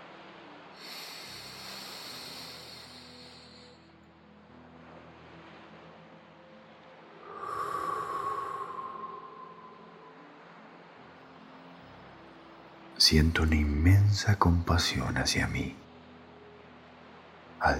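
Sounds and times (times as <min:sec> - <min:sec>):
slow deep breathing during a guided meditation: 0:00.8 - 0:03.9, 0:07.2 - 0:10.2
speech: 0:13.0 - 0:15.8.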